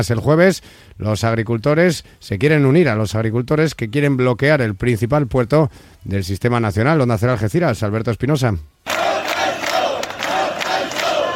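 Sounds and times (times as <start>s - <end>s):
speech: 0.0s - 9.0s
crowd chanting shouts of support: 8.9s - 11.3s.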